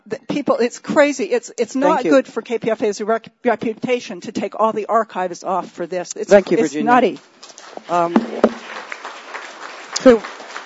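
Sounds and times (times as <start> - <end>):
speech: 0.4 - 8.6, 10.0 - 10.3
audience applause: 7.6 - 10.6.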